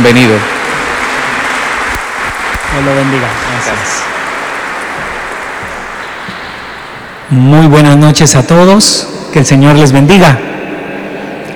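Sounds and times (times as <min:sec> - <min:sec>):
speech: 0:00.0 - 0:00.6, 0:02.7 - 0:04.1, 0:07.3 - 0:10.6
audience applause: 0:00.0 - 0:07.8.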